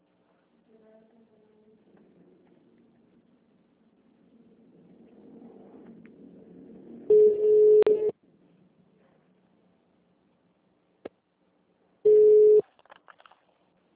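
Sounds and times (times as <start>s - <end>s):
telephone line beeps after a dropped call: 7.1s - 8.1s, 12.1s - 12.6s.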